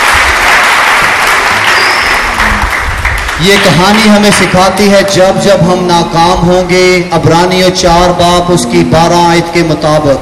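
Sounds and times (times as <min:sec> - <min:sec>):
church congregation applauding loudly at a service: 0:00.0 - 0:04.9
speech: 0:03.4 - 0:10.1.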